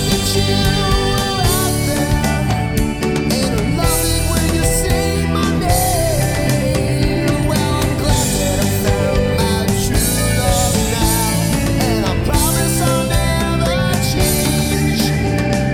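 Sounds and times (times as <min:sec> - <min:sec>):
male keyboards bass: 0:00.0 - 0:15.7.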